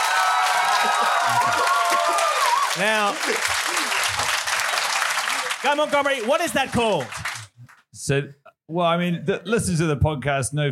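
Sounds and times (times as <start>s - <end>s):
audience applause at a live show: 0.0s - 8.0s
speech: 0.8s - 4.4s, 5.6s - 7.2s, 8.0s - 10.7s.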